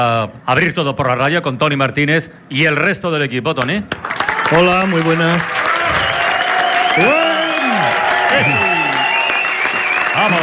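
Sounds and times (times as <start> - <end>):
speech: 0.0 - 6.0, 7.0 - 7.2, 8.3 - 8.8, 10.2 - 10.4
studio audience clapping: 3.9 - 10.4
studio audience whoops and yells: 5.6 - 10.4.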